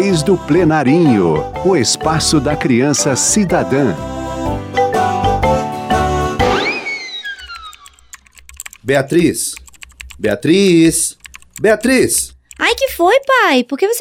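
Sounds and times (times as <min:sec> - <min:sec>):
speech: 0:00.0 - 0:04.8, 0:08.9 - 0:09.6, 0:10.2 - 0:14.0
bright rising electronic chime: 0:04.8 - 0:08.1
rapid typing on a computer keyboard: 0:07.4 - 0:14.0.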